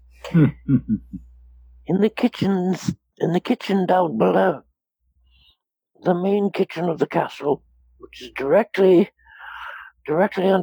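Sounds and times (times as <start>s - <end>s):
person coughing: 0.2s - 1.2s
speech: 0.4s - 1.3s, 1.9s - 4.7s, 6.0s - 9.2s, 10.1s - 10.6s.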